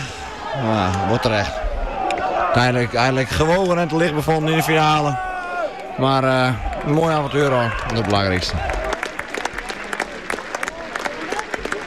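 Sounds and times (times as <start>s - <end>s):
speech: 0.6s - 1.6s, 2.3s - 5.3s, 6.0s - 8.7s
supporters applauding in a stadium: 5.6s - 11.8s.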